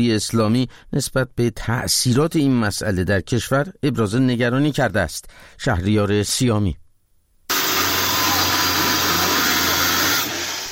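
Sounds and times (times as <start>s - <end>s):
speech: 0.0s - 6.8s
police chainsaw cutting to force entry: 7.5s - 10.7s.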